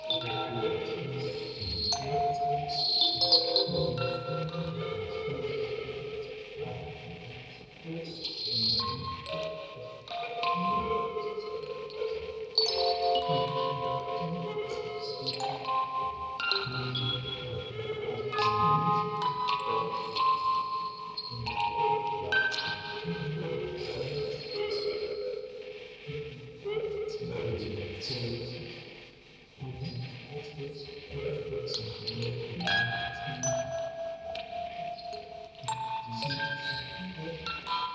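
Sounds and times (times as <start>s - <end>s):
field recording ambience: 0.0s - 37.9s
vocoder: 0.0s - 37.9s
quartet of music boxes playing: 1.4s - 5.4s, 9.2s - 23.1s, 32.6s - 37.9s.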